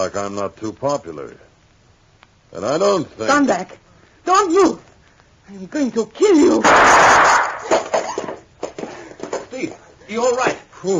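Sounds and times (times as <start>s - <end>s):
speech: 0.0s - 1.5s, 2.5s - 4.9s, 5.5s - 7.9s, 9.6s - 10.9s
gunshots fired during a confrontation: 6.6s - 7.9s
burst of noise: 6.6s - 8.0s.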